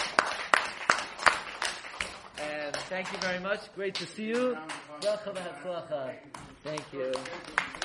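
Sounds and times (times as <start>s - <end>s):
round of applause: 0.0s - 3.4s, 6.8s - 7.8s
speech: 2.9s - 7.7s.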